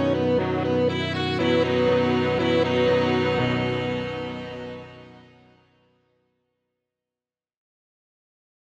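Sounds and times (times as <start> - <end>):
death theme music: 0.0 - 5.5.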